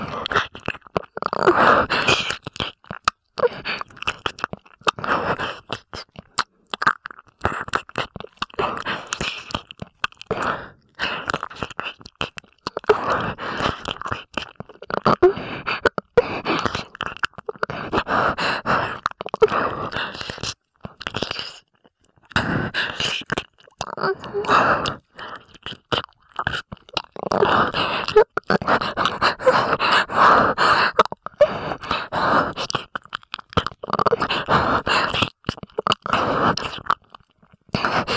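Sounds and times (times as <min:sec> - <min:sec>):
ear licking on left side: 0:00.0 - 0:38.1
person moaning in left ear: 0:24.0 - 0:24.6.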